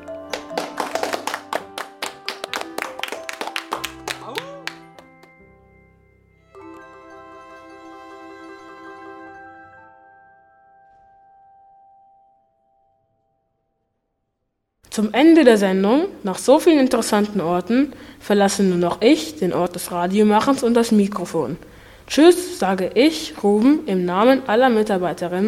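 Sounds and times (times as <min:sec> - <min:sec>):
scattered hand claps: 0:00.2 - 0:05.4
speech: 0:15.0 - 0:25.4.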